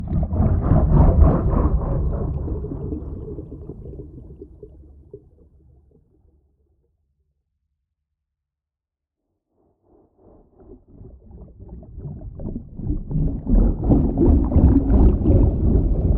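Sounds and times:
designed underwater propeller whoosh: 0.0s - 4.9s, 11.6s - 16.1s.

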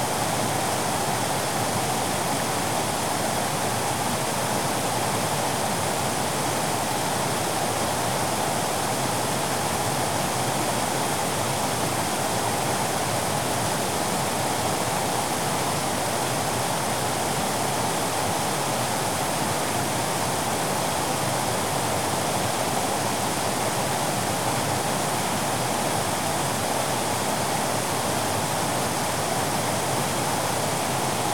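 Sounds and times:
waterfall: 0.0s - 31.3s.

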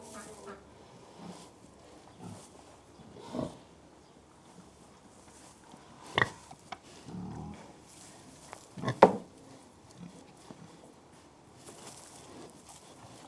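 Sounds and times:
pigs grunting: 0.0s - 3.8s, 6.0s - 7.8s.

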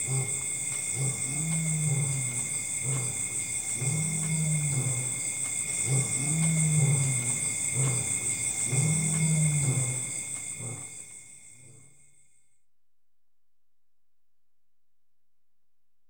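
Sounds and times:
lions in Africa: 0.0s - 12.0s
insect chorus in Africa: 0.0s - 12.4s.

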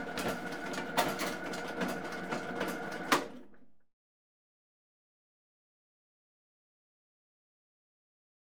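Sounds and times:
printing machinery running: 0.0s - 3.6s.

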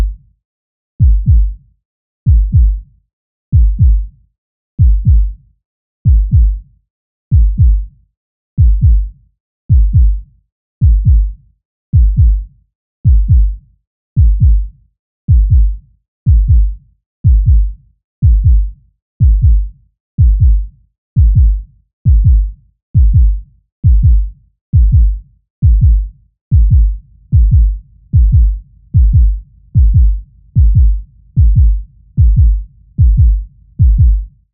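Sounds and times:
heartbeat: 0.0s - 0.2s, 1.0s - 1.6s, 2.3s - 2.8s, 3.5s - 4.1s, 4.8s - 5.4s, 6.1s - 6.6s, 7.3s - 7.9s, 8.6s - 9.1s, 9.7s - 10.2s, 10.8s - 11.4s, 12.0s - 12.5s, 13.1s - 13.6s, 14.2s - 14.7s, 15.3s - 34.5s.

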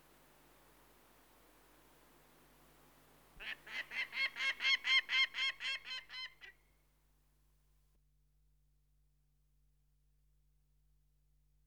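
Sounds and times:
peregrine falcon cackling: 3.4s - 6.5s.

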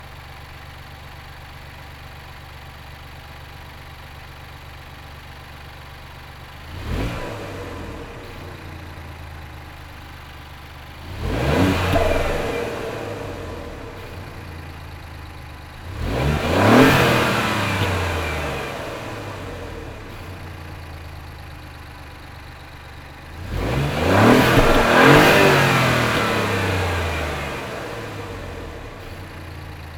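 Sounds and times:
Alfa Romeo Giulia Quadrifoglio 2015 engine starting, onboard: 0.0s - 29.9s
Alfa Romeo Giulia Quadrifoglio 2015 engine throttle blips, onboard: 10.7s - 14.9s, 15.7s - 20.9s, 22.8s - 29.9s.

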